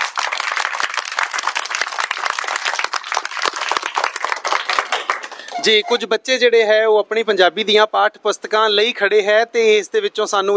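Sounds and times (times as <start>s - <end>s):
schoolchildren applauding loudly for their teacher: 0.0s - 5.6s
speech: 5.6s - 10.5s.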